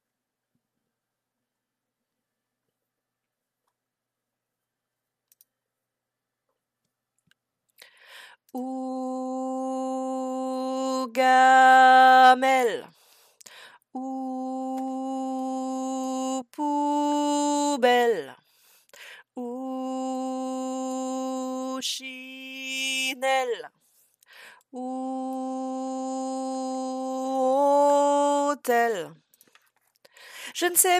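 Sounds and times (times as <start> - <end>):
tenor singing: 8.5 - 12.9, 14.0 - 18.4, 19.4 - 23.7, 24.7 - 29.2, 30.5 - 30.9.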